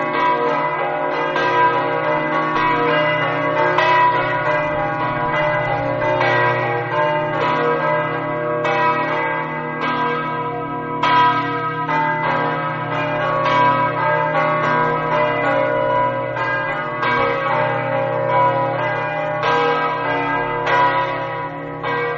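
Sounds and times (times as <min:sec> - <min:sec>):
bells ringing in Gruagno: 0:00.0 - 0:22.1.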